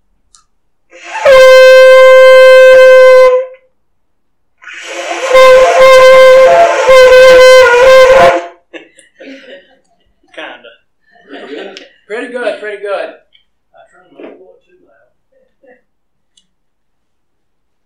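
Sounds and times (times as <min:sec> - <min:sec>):
ram's horn shofar blasts: 0:00.9 - 0:03.7, 0:04.6 - 0:08.6
laughter: 0:08.7 - 0:12.0.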